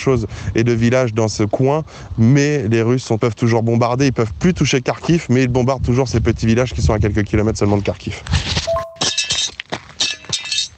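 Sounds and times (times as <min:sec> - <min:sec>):
speech: 0:00.0 - 0:08.6
shell fragments clinking and scraping as they're cleared away: 0:09.0 - 0:10.7.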